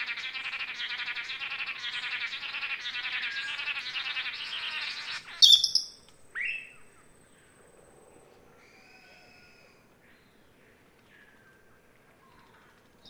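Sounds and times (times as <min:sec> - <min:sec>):
blue-backed manakins calling together: 0:00.0 - 0:06.7.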